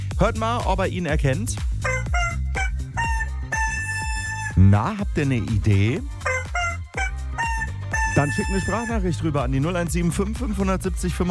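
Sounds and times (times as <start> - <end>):
speech: 0.2 - 1.9, 4.6 - 6.2, 8.2 - 11.2
squeaky dog toy being squeezed: 1.8 - 4.8, 6.2 - 9.0.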